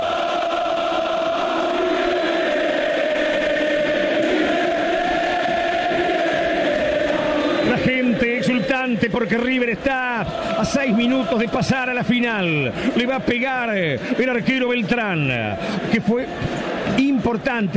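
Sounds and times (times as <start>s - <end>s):
River Plate football fans cheering and chanting in the stadium: 0.0s - 17.7s
speech: 9.0s - 17.7s.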